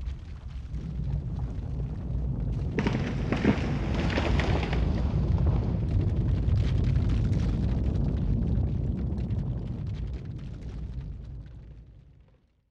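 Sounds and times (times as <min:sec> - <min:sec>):
earthquake rumble: 0:00.0 - 0:12.7.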